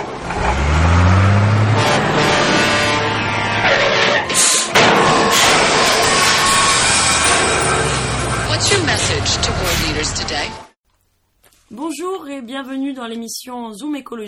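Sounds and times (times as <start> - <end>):
garbage truck driving off: 0.0 - 10.8
speech: 12.6 - 14.2.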